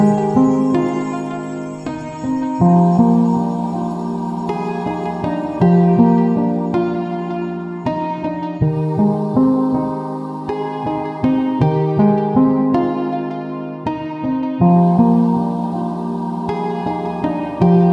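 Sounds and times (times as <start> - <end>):
soothing lofi soundscape: 0.0 - 17.9.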